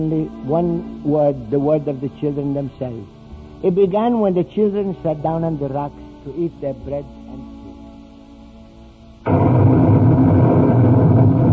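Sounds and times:
speech: 0.0 - 7.4
low steady hum: 9.2 - 11.5
distant thunder rumbling: 9.3 - 11.5.

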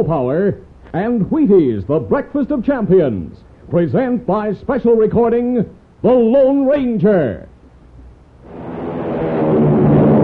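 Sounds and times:
speech: 0.0 - 7.5
airliner engines roaring during takeoff: 8.4 - 10.2.

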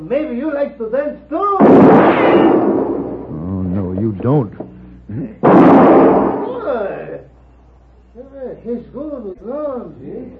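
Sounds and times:
speech: 0.0 - 2.7, 3.7 - 6.1, 8.6 - 10.3
gunshot shooting a gun out of a man's hand in a Western drama: 1.6 - 3.4, 5.4 - 6.7.

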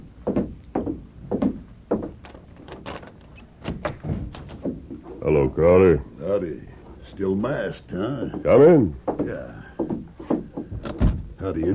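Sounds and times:
heavy wooden thunks of a door being opened: 0.3 - 4.8, 10.6 - 11.4
latch clicking and rattling: 2.2 - 4.7
speech: 5.2 - 9.7, 11.4 - 11.7.

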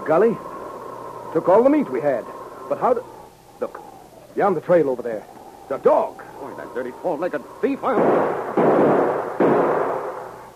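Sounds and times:
speech: 0.1 - 0.5, 1.3 - 3.8, 4.4 - 8.9
gunshot fired at a dog: 7.9 - 10.4.

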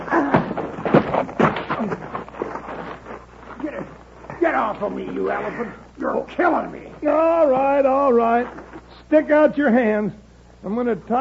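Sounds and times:
punches landing in a fistfight: 0.0 - 2.2
rough scuffling: 0.0 - 9.4
speech: 4.6 - 11.2.

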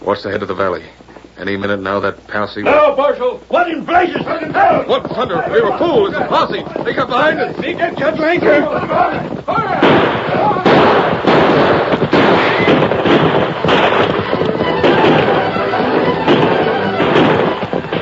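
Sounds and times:
speech: 0.0 - 10.6
gunfire from a gunfight: 3.8 - 18.0.

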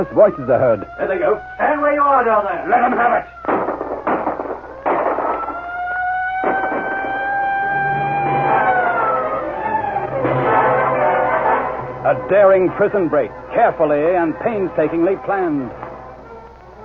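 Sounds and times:
speech: 0.0 - 3.6, 12.1 - 15.8
siren wailing at night: 0.0 - 16.8.

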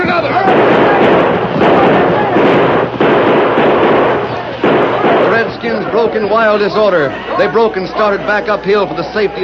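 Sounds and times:
gunfire in a battle: 0.0 - 6.8
speech: 6.0 - 9.4.

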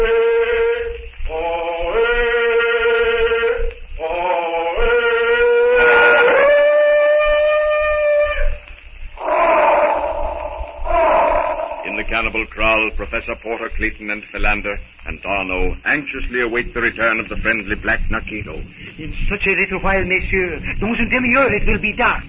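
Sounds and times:
elephant trumpeting: 0.0 - 12.3
speech: 12.3 - 22.2.

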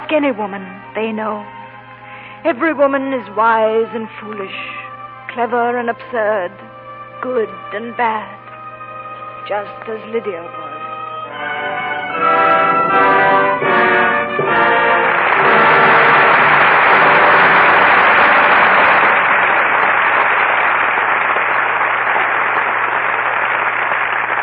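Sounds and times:
speech: 0.1 - 1.6, 2.4 - 8.4, 9.4 - 10.6, 11.4 - 13.1
studio audience applause: 11.4 - 24.4.

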